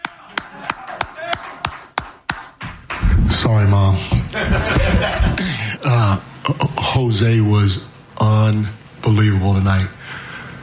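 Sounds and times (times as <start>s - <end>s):
clapping: 0.0s - 2.5s
speech: 3.4s - 10.2s
laughter: 4.1s - 5.8s.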